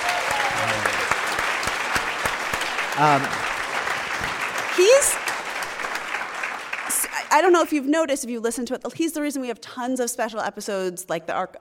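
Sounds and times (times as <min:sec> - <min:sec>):
audience applause: 0:00.0 - 0:07.6
speech: 0:03.0 - 0:03.4, 0:04.2 - 0:05.2, 0:07.3 - 0:11.5.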